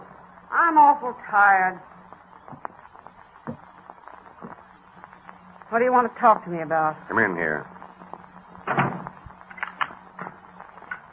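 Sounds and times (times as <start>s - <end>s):
speech: 0.7s - 1.9s, 5.7s - 7.8s
door shutting with a muffled thump: 8.6s - 10.4s.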